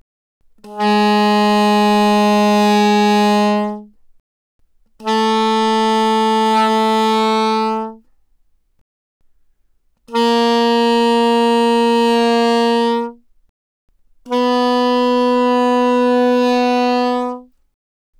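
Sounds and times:
soprano saxophone notes without vibrato: 0:00.6 - 0:03.9, 0:05.0 - 0:08.0, 0:10.1 - 0:13.2, 0:14.2 - 0:17.5.

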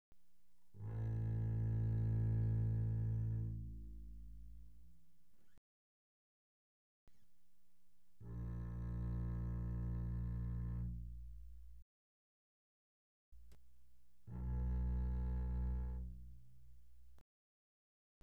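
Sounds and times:
double bass bowed pianissimo on the A string: 0:00.7 - 0:05.6, 0:08.2 - 0:11.8, 0:14.2 - 0:17.2.

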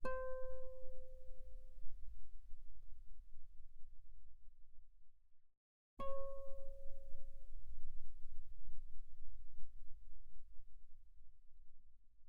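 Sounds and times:
guitar playing very softly on the G string: 0:00.0 - 0:02.1, 0:06.0 - 0:07.9.

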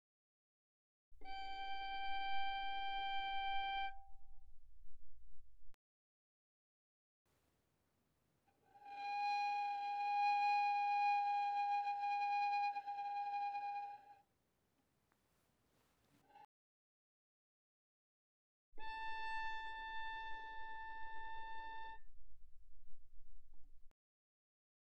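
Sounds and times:
violin arco pianissimo on the D string: 0:01.2 - 0:04.7, 0:08.7 - 0:14.2, 0:18.8 - 0:23.1.

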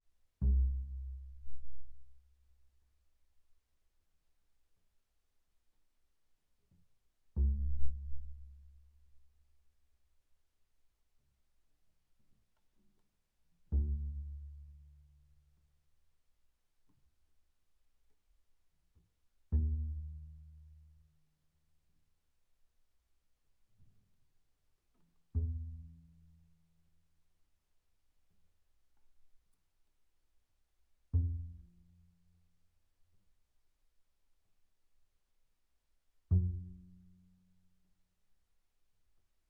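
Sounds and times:
very soft double bass pizzicato on the E string: 0:00.4 - 0:02.2, 0:07.4 - 0:09.0, 0:13.6 - 0:15.2, 0:19.5 - 0:21.0, 0:25.3 - 0:26.4, 0:31.1 - 0:32.2, 0:36.3 - 0:37.4.

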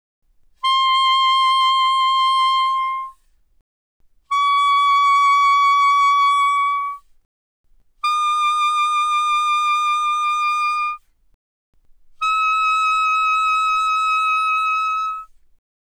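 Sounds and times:
soprano saxophone vibrato: 0:00.6 - 0:03.2, 0:04.3 - 0:07.0, 0:08.0 - 0:11.0, 0:12.2 - 0:15.3.

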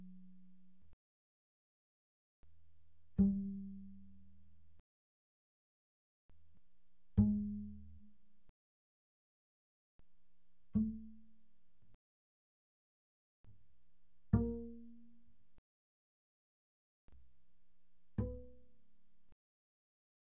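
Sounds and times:
double bass pizzicato on the D string: 0:07.2 - 0:08.0, 0:10.8 - 0:11.4, 0:14.3 - 0:15.3, 0:18.2 - 0:18.7.

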